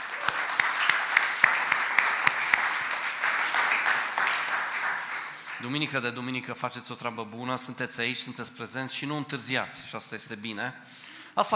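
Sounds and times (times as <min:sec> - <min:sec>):
audience applause: 0:00.0 - 0:05.7
speech: 0:05.6 - 0:11.5.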